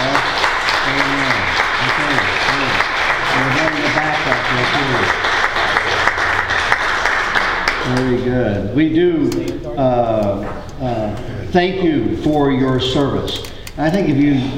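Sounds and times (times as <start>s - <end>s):
audience applause: 0.0s - 8.2s
speech: 7.9s - 14.5s.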